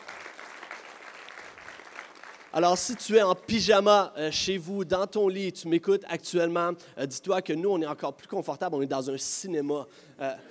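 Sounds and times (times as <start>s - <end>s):
audience clapping: 0.0s - 3.2s
speech: 2.5s - 10.4s.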